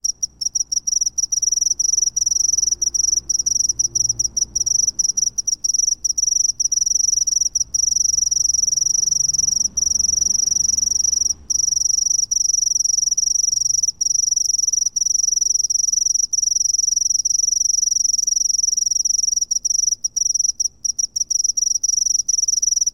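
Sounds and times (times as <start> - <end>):
cricket chirping: 0.0 - 22.9.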